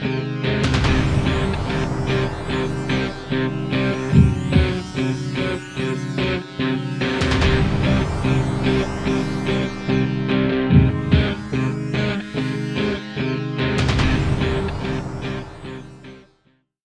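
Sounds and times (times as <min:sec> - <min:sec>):
guitar: 0:00.0 - 0:16.6.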